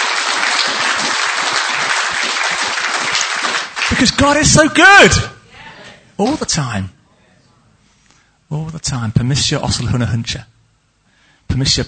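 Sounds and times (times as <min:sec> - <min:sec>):
audience clapping: 0:00.0 - 0:04.8
speech: 0:04.0 - 0:05.3, 0:06.2 - 0:07.0, 0:08.5 - 0:10.5, 0:11.5 - 0:11.8.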